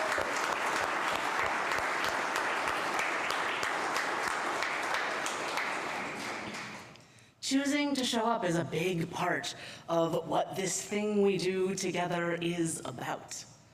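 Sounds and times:
audience applause: 0:00.0 - 0:06.9
speech: 0:07.5 - 0:13.5.

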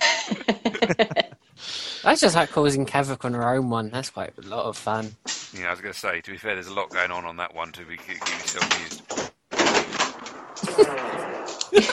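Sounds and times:
laughter: 0:00.0 - 0:01.4, 0:05.6 - 0:08.9, 0:10.6 - 0:11.9
speech: 0:02.1 - 0:08.9, 0:10.8 - 0:11.1
creaky door opening: 0:08.0 - 0:11.7.

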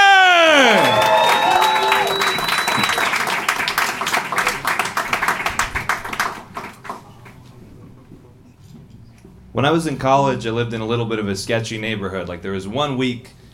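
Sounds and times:
high whistle: 0:00.0 - 0:03.3
Portland comedy club audience applauding and cheering: 0:00.0 - 0:07.5
speech: 0:09.6 - 0:13.4.

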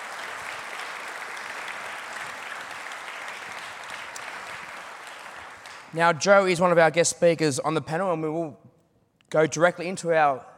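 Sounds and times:
audience applause at an Aboriginal and Torres Strait Islander mental health event: 0:00.0 - 0:05.9
speech: 0:05.9 - 0:08.7, 0:09.3 - 0:10.5.

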